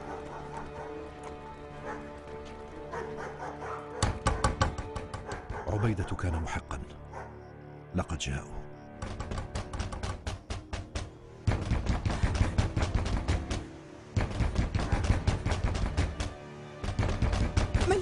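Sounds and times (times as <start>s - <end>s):
loud rapid banging on a door: 4.0s - 5.7s, 9.0s - 18.0s
speech: 5.7s - 7.0s, 8.0s - 8.6s.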